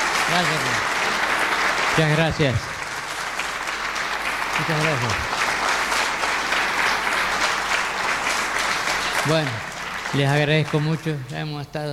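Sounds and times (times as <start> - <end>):
audience applause: 0.0 - 11.4
speech: 0.3 - 0.9, 2.0 - 2.7, 4.6 - 5.4, 9.2 - 11.9.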